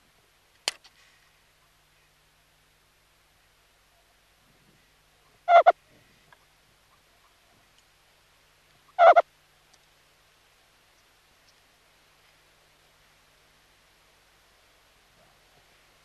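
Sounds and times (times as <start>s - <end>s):
meerkat sentry calls: 5.4s - 5.8s, 8.9s - 9.2s.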